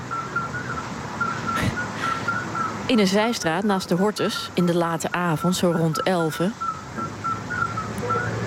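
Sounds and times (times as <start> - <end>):
midwife toads whistling in Amsterdam: 0.0 - 3.2, 5.3 - 8.4
street traffic in Amsterdam: 0.0 - 8.4
speech: 2.9 - 7.1.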